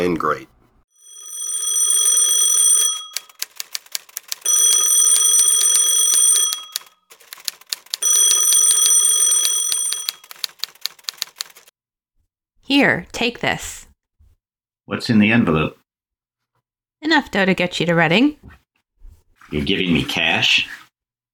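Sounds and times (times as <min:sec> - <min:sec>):
speech: 0:00.0 - 0:00.6, 0:12.7 - 0:13.8, 0:14.9 - 0:15.8, 0:17.0 - 0:18.6, 0:19.5 - 0:20.8
telephone ringing: 0:01.0 - 0:11.7.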